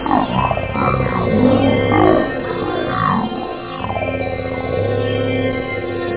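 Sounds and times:
303 bass synth: 0:00.0 - 0:06.1.

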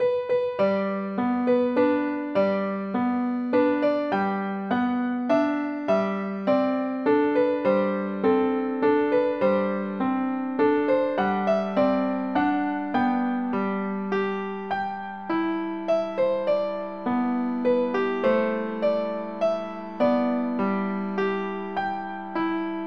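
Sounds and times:
lullaby music: 0:00.0 - 0:22.8.

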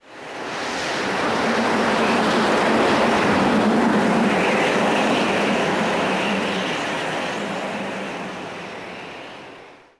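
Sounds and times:
wind: 0:00.0 - 0:09.9.

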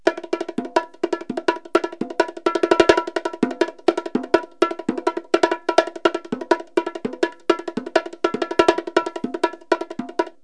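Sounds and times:
Latin rhythm: 0:00.0 - 0:10.4.

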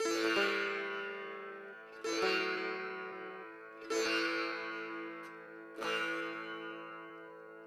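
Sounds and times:
ethnic sitar: 0:00.0 - 0:07.6.

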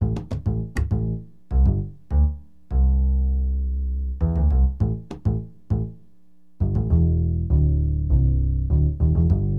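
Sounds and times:
acid jazz funk bass: 0:00.0 - 0:09.5.

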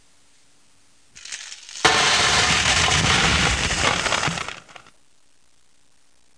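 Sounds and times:
coins: 0:01.2 - 0:04.7.

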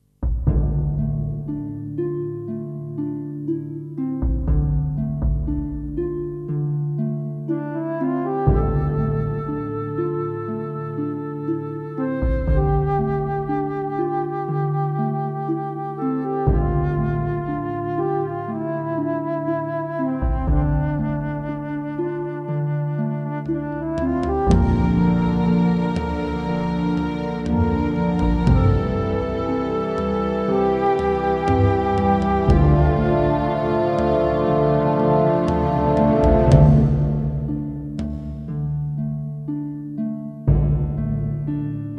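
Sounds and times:
ambient music: 0:00.4 - 0:41.9.

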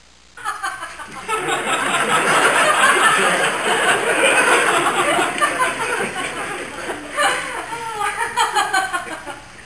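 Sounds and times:
adult crowd laughing: 0:00.4 - 0:09.5.

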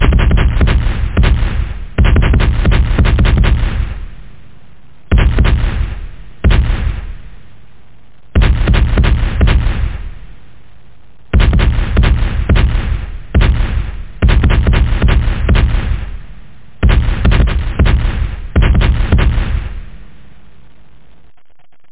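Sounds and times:
cannon fire: 0:00.0 - 0:07.7, 0:08.3 - 0:10.6, 0:11.2 - 0:20.3.

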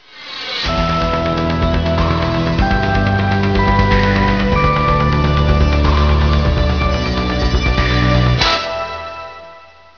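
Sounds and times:
theme music: 0:00.6 - 0:09.9.

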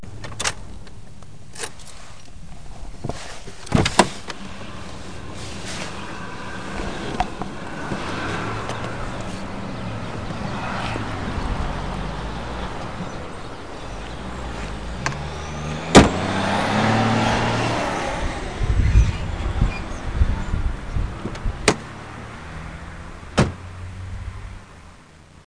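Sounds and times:
traffic: 0:00.0 - 0:25.4.

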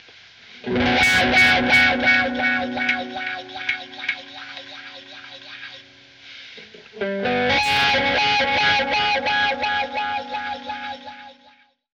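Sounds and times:
wah-wah guitar: 0:00.6 - 0:06.1, 0:07.0 - 0:11.5.

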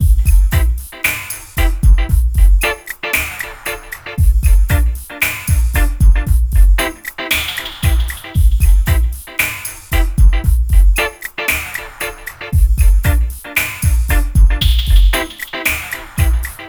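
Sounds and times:
reggae style groove: 0:00.0 - 0:16.6.

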